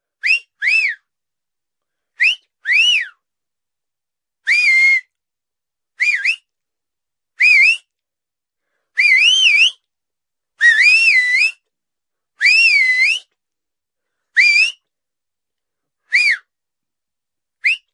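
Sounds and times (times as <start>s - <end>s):
whistling: 0.2s - 1.1s, 2.2s - 3.2s, 4.5s - 5.2s, 6.0s - 6.5s, 7.4s - 8.0s, 8.9s - 9.9s, 10.6s - 11.7s, 12.4s - 13.4s, 14.3s - 14.9s, 16.0s - 16.6s, 17.6s - 17.9s.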